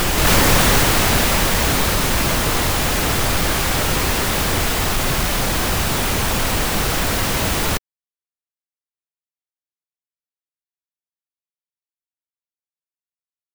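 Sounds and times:
radio noise: 0:00.0 - 0:07.8.

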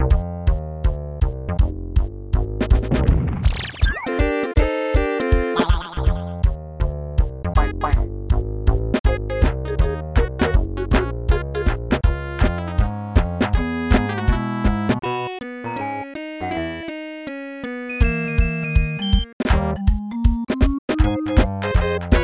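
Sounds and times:
level game music: 0:00.0 - 0:22.2.

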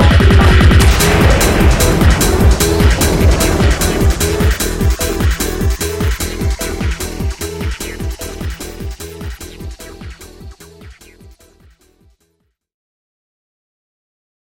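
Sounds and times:
electronic explosion: 0:00.1 - 0:10.1.

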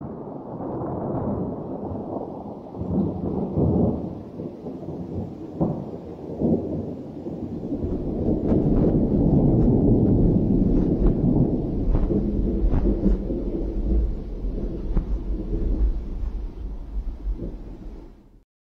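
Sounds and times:
thunder: 0:00.0 - 0:18.4.

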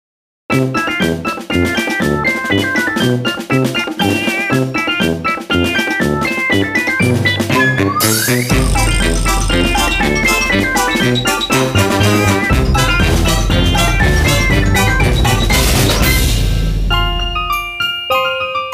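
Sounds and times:
barcode background music: 0:00.5 - 0:18.7.

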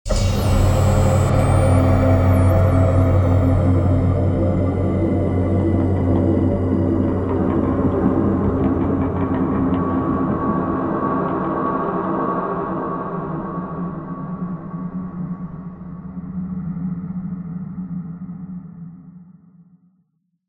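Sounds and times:
death music stinger: 0:00.1 - 0:16.4.

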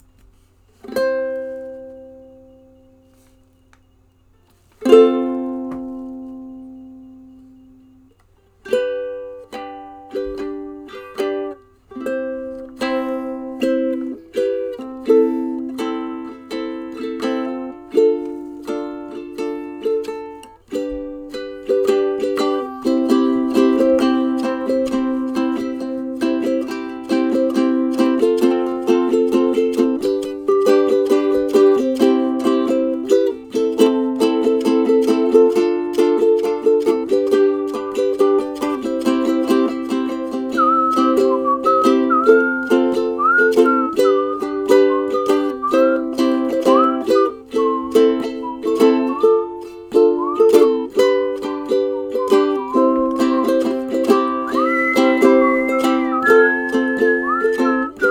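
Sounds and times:
ukulele: 0:00.0 - 0:58.1.

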